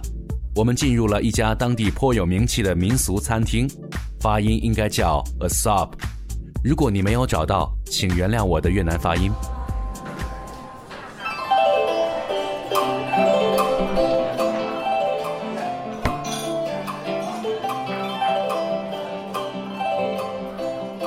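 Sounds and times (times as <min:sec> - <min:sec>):
speech: 0:00.6 - 0:09.6
traditional Vietnamese instrumental music: 0:09.8 - 0:21.0.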